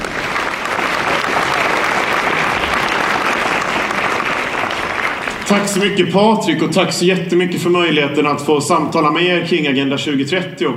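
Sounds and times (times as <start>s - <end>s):
audience applause: 0.0s - 6.0s
speech: 5.5s - 10.7s.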